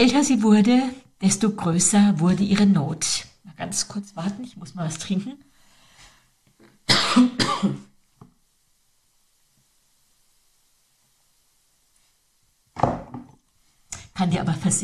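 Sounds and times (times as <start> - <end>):
speech: 0.0 - 5.4, 14.2 - 14.8
person coughing: 6.9 - 7.9.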